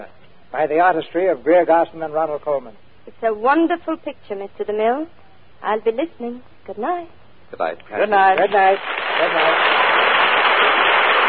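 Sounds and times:
speech: 0:00.0 - 0:09.8
studio audience applause: 0:08.4 - 0:11.2.

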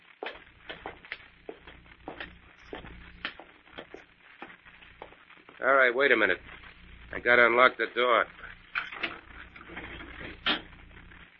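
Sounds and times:
footsteps climbing stairs: 0:00.2 - 0:05.2
low hum: 0:00.3 - 0:05.2, 0:06.2 - 0:11.3
speech: 0:05.6 - 0:06.5, 0:07.1 - 0:08.4.

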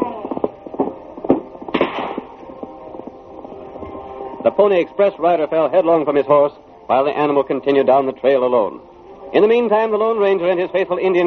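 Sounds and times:
gunshot: 0:00.8 - 0:02.4
speech: 0:04.4 - 0:11.2.

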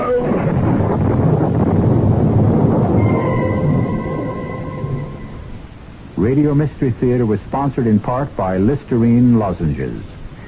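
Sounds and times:
rolling thunder: 0:00.0 - 0:06.6
wind: 0:00.0 - 0:10.4
speech: 0:06.2 - 0:10.2.

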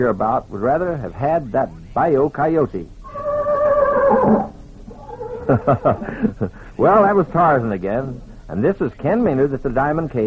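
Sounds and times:
speech: 0:00.0 - 0:03.0, 0:04.1 - 0:04.5, 0:05.5 - 0:10.2
horse whinnying: 0:03.0 - 0:05.7
laughter: 0:05.4 - 0:07.4.

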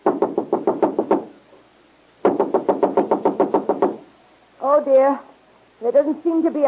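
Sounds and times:
knocking on a wooden door: 0:00.0 - 0:01.3, 0:02.2 - 0:04.0
speech: 0:04.8 - 0:06.6.

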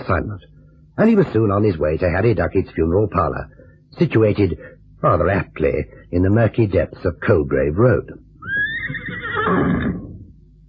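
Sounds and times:
speech: 0:00.0 - 0:10.0
horse neighing: 0:08.4 - 0:10.3.

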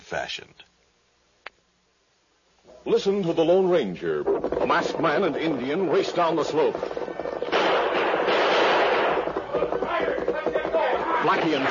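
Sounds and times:
speech: 0:00.1 - 0:00.7, 0:02.6 - 0:07.0, 0:11.2 - 0:11.6
gunshots exchanged in radio drama: 0:04.3 - 0:11.6.

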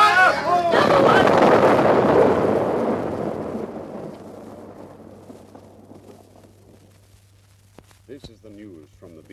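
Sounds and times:
German guided rocket exploding in wartime London: 0:00.7 - 0:07.2.

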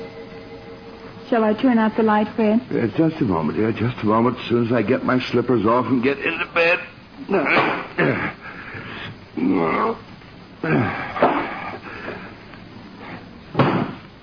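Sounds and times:
speech: 0:01.3 - 0:08.4, 0:09.4 - 0:11.2
vocal sounds: 0:06.2 - 0:11.8
book knocked off a night table landing: 0:13.6 - 0:14.0.

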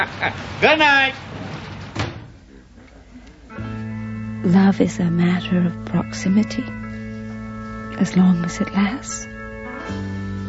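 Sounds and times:
speech: 0:00.0 - 0:01.4, 0:04.4 - 0:06.8, 0:08.0 - 0:09.3
door closing thud: 0:01.5 - 0:02.4.

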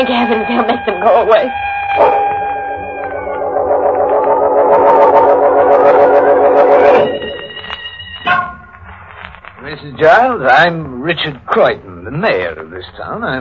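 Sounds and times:
speech: 0:00.0 - 0:02.2, 0:09.7 - 0:13.3
police siren wailing: 0:00.0 - 0:08.1.

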